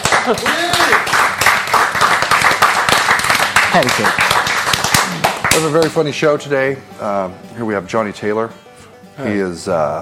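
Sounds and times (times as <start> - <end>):
live studio audience clapping at a comedy show: 0.0 - 6.0
speech: 0.2 - 1.2, 3.7 - 4.3, 5.6 - 8.6, 9.2 - 10.0.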